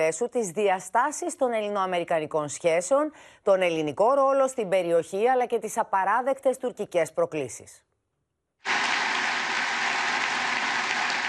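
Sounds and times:
speech: 0:00.0 - 0:07.9
prolonged applause of senators in Congress: 0:08.7 - 0:11.2.

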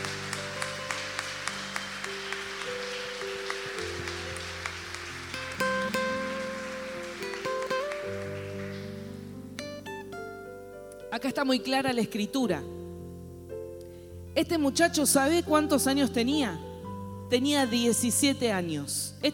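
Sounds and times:
audience applauding: 0:00.0 - 0:09.4
speech: 0:11.2 - 0:12.8, 0:14.4 - 0:16.7, 0:17.3 - 0:19.3.

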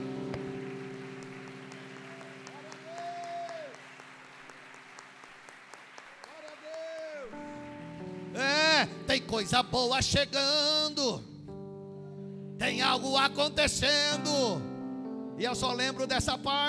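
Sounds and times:
audience applause: 0:00.0 - 0:08.5
speech: 0:09.3 - 0:11.3, 0:12.6 - 0:14.7, 0:15.4 - 0:16.6.

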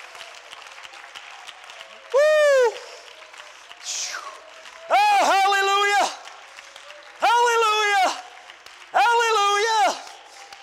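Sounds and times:
audience clapping: 0:00.0 - 0:10.6.

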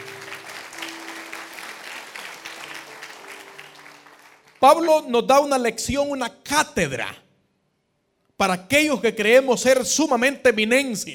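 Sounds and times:
audience clapping: 0:00.0 - 0:05.2
speech: 0:04.6 - 0:07.2, 0:08.4 - 0:11.1.

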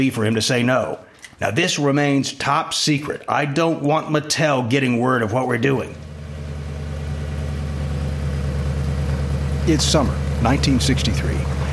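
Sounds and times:
speech: 0:00.0 - 0:06.1, 0:09.6 - 0:11.6
car engine idling outside a warehouse: 0:05.5 - 0:11.7.

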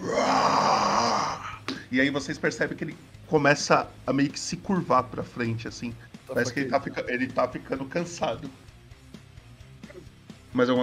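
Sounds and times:
creature screaming: 0:00.0 - 0:01.6
speech: 0:01.9 - 0:08.6, 0:10.5 - 0:10.8.

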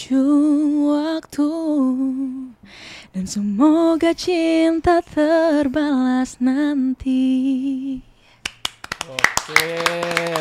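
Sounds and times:
speech: 0:00.0 - 0:01.9, 0:03.2 - 0:08.1
hand clapping: 0:08.4 - 0:10.3.

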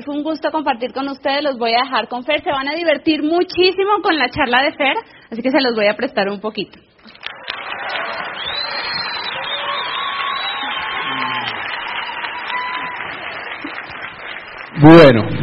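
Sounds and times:
speech: 0:00.0 - 0:07.2, 0:14.8 - 0:15.4
audience applause: 0:07.2 - 0:15.4.

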